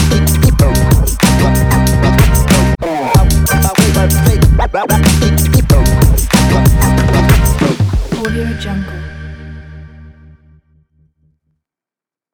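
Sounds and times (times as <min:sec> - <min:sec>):
hip hop music: 0:00.0 - 0:09.5.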